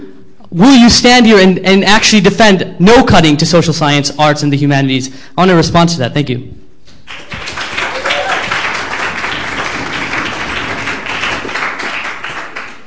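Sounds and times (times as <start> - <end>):
speech: 0.5 - 6.6
audience applause: 7.1 - 12.8.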